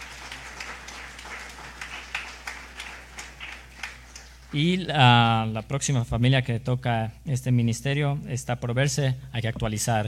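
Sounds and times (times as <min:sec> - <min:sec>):
audience applause: 0:00.0 - 0:04.6
speech: 0:04.5 - 0:10.0.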